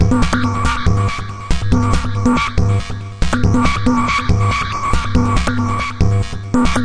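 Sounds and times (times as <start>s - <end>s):
drum loops and breaks: 0.0s - 6.8s.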